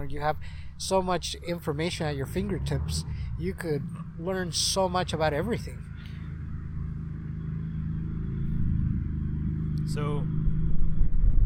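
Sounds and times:
speech: 0.0s - 5.9s, 9.9s - 10.4s
motorcycle: 0.0s - 11.4s.

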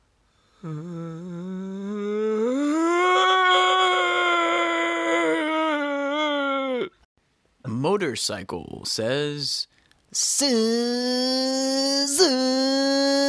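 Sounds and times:
speech: 0.6s - 1.0s, 7.9s - 13.1s
voice imitating an air conditioner: 0.6s - 5.8s, 10.2s - 13.2s.

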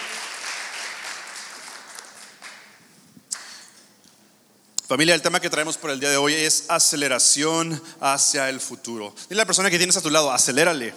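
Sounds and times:
audience applause: 0.0s - 2.8s
speech: 4.9s - 10.9s.

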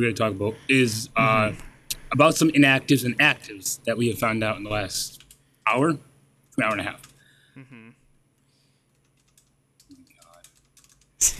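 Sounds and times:
speech: 0.0s - 8.0s
typing on a computer keyboard: 5.1s - 5.4s, 8.9s - 11.2s
short voice sound: 7.6s - 7.9s.

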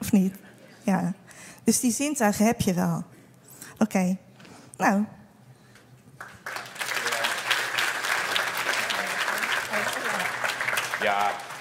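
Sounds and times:
speech: 0.1s - 3.2s, 3.8s - 5.2s, 11.0s - 11.5s
audience applause: 6.2s - 11.5s.

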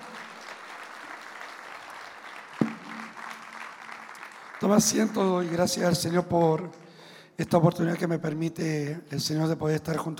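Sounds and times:
crowd applause: 0.0s - 5.9s
speech: 4.6s - 6.8s, 7.4s - 10.1s.

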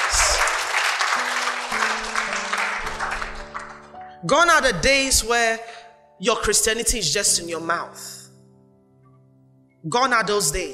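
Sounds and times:
audience clapping: 0.0s - 4.1s
speech: 4.2s - 8.2s, 9.8s - 10.7s.

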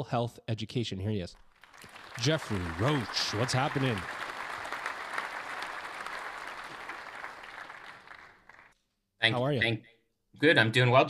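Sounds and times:
speech: 0.0s - 4.2s, 9.3s - 11.0s
applause sound effect: 1.4s - 8.8s.

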